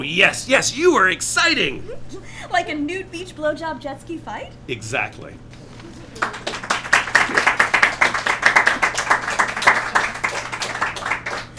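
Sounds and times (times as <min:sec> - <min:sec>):
audience clapping: 0:00.0 - 0:01.8, 0:06.1 - 0:11.5
speech: 0:00.0 - 0:05.6.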